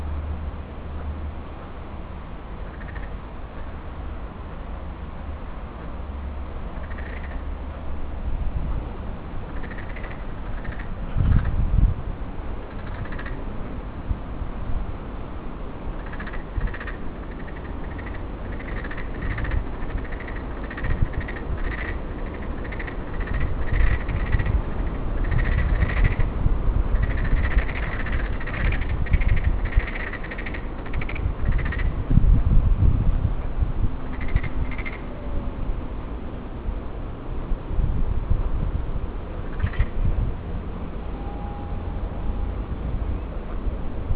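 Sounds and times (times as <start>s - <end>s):
low rumbling noise: 0.0s - 44.1s
frogs giving rattling pulsed croaks: 2.6s - 3.8s, 6.7s - 7.6s, 9.4s - 11.6s, 12.6s - 13.5s, 16.0s - 26.3s, 26.9s - 32.0s, 34.1s - 35.1s, 39.4s - 40.0s.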